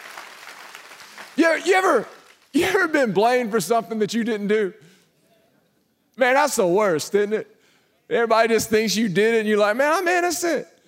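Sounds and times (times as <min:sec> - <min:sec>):
audience clapping hands: 0:00.0 - 0:02.7
speech: 0:01.4 - 0:04.8, 0:06.2 - 0:07.5, 0:08.1 - 0:10.7.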